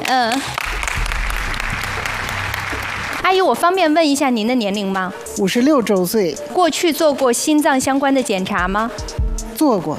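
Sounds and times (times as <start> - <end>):
audience applause: 0.0 - 3.4
speech: 0.1 - 0.8, 3.2 - 9.9.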